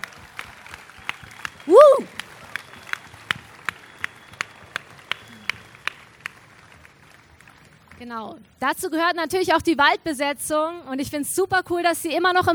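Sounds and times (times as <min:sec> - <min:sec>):
audience applause: 0:00.0 - 0:08.0
speech: 0:08.1 - 0:12.5.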